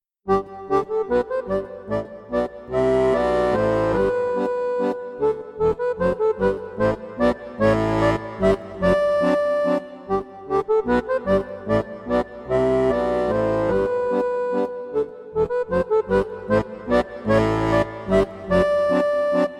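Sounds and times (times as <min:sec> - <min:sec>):
minuet: 0:00.3 - 0:19.5.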